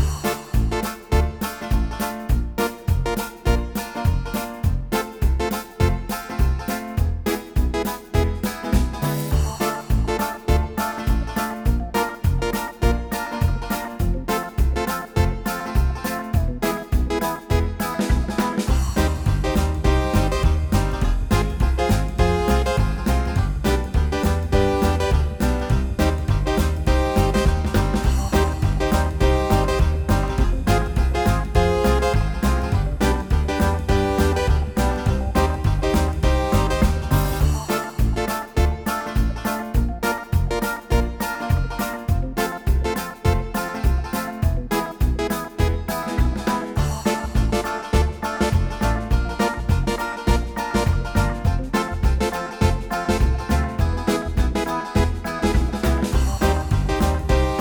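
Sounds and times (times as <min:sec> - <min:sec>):
banjo: 0:00.0 - 0:57.5.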